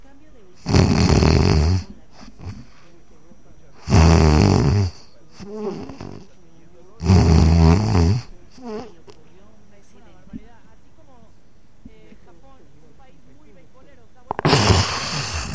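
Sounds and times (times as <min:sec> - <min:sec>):
person imitating sleep apnea breathing and snoring: 0:00.6 - 0:02.8, 0:03.8 - 0:06.3, 0:07.0 - 0:09.0, 0:14.4 - 0:15.5.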